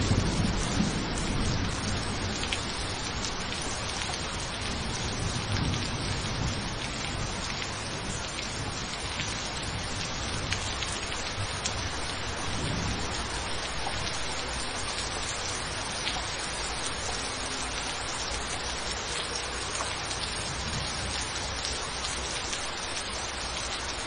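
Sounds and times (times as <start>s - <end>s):
thunderstorm rain: 0.0s - 24.0s.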